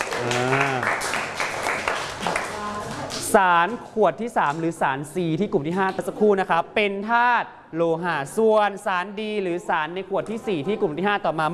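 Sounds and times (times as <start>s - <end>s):
audience applauding a group: 0.0s - 2.7s
speech: 3.3s - 11.5s.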